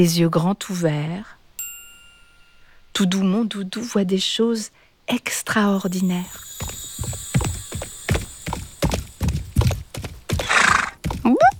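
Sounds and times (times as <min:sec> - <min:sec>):
speech: 0:00.0 - 0:01.4, 0:03.0 - 0:07.2
galloping horse hooves: 0:06.0 - 0:11.5
horse whinnying: 0:10.4 - 0:11.4.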